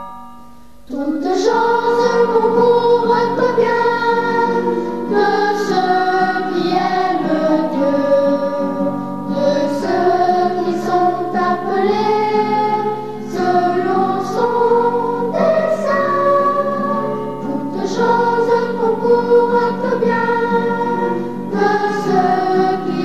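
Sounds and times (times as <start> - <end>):
people singing a hymn: 0.9 - 23.0.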